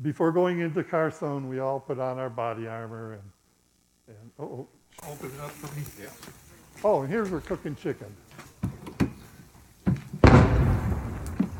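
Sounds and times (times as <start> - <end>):
speech: 0.0 - 3.4, 4.1 - 8.7
152 caliber Russian artillery fire: 10.2 - 11.5.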